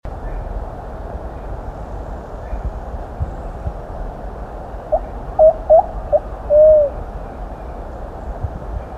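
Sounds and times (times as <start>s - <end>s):
Plumbeous pigeon song of short hoots and drawn-out coo: 4.9s - 7.0s.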